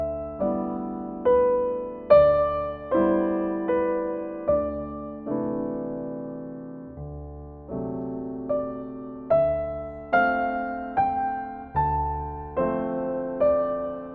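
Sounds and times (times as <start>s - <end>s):
Steinway piano piece: 0.0s - 14.1s.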